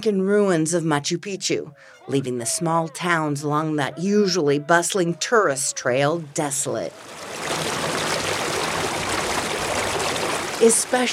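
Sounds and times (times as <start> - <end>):
speech: 0.0 - 7.8, 10.6 - 11.1
river water rushing through stone-lined irrigation canals: 6.6 - 11.1.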